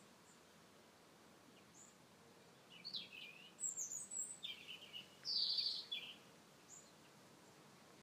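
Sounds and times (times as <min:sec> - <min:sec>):
low background hiss: 0:00.0 - 0:08.0
bird calling with high thin chirps: 0:02.7 - 0:07.1.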